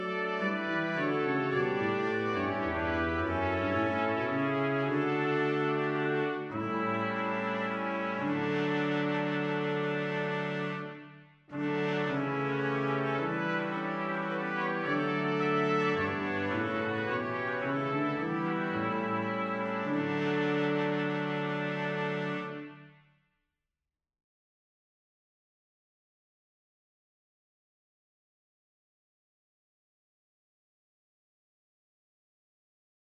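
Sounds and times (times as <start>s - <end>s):
brass quintet: 0.0s - 23.1s.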